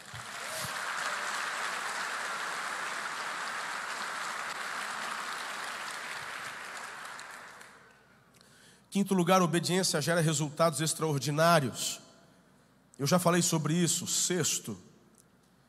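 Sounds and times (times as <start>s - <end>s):
audience applauding: 0.0s - 7.9s
speech: 8.9s - 12.0s, 13.0s - 14.9s.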